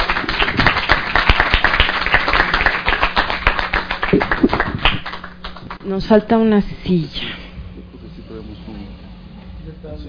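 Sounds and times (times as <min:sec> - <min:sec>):
audience applause for the panelists: 0:00.0 - 0:05.8
speech: 0:04.1 - 0:04.6, 0:05.9 - 0:07.2.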